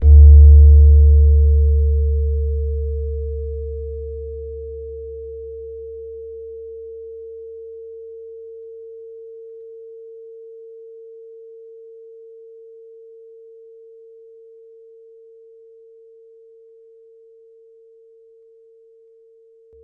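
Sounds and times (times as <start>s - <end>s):
metallophone hit: 0.0s - 4.5s.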